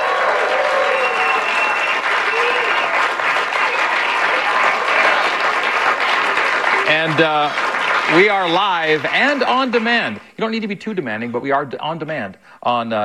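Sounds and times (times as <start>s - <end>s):
studio audience applause at the BYU Broadcasting Building in Provo, Utah: 0.0s - 10.2s
speech: 7.0s - 13.0s.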